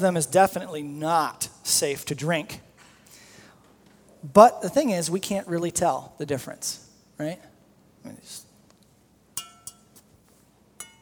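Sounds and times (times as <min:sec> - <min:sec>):
speech: 0:00.0 - 0:02.7, 0:04.2 - 0:08.4
glasses of water clinking: 0:09.4 - 0:10.1, 0:10.8 - 0:10.9.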